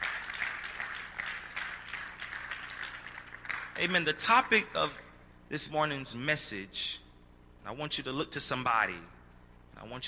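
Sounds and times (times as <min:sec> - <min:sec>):
audience clapping: 0:00.0 - 0:04.0
speech: 0:03.8 - 0:07.0, 0:07.6 - 0:09.2, 0:09.8 - 0:10.0.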